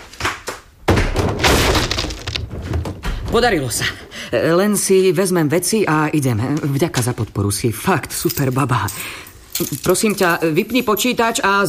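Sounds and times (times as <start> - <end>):
kicks thumping against a door: 0.8 - 3.5
rattling, splintering debris: 1.2 - 3.3
speech: 3.3 - 11.6.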